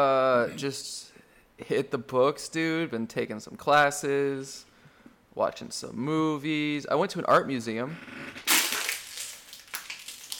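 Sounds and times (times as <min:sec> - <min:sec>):
speech: 0:00.0 - 0:04.7, 0:05.3 - 0:08.5
plastic water bottle crushed between hands: 0:08.4 - 0:10.3.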